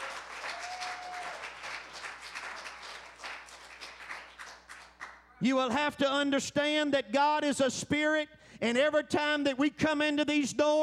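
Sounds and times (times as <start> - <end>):
audience clapping hands in praise: 0.0 - 5.3
speech: 5.4 - 10.8.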